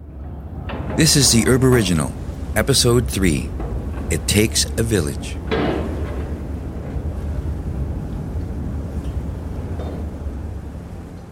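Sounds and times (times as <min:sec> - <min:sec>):
ferry boat crossing an inlet: 0:00.0 - 0:11.3
speech: 0:01.0 - 0:05.6.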